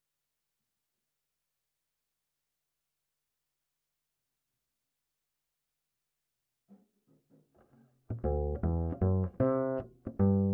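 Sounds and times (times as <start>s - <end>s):
ragtime bass line: 8.1s - 10.5s.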